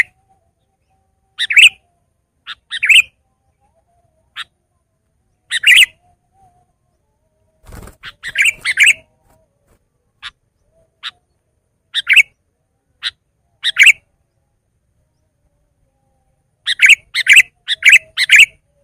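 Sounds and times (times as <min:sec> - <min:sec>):
Sooty-headed bulbul song of short bubbly phrases: 0:00.0 - 0:18.8.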